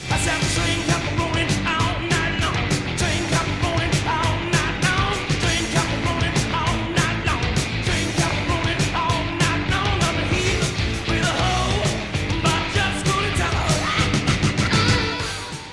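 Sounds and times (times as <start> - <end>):
rock guitar riff from a recording: 0.0 - 15.7.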